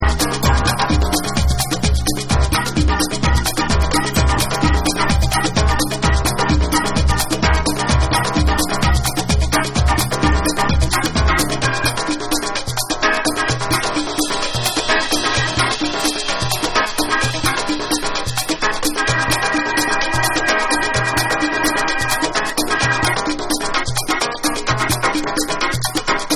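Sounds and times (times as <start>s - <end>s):
tribal music: 0.0s - 26.3s.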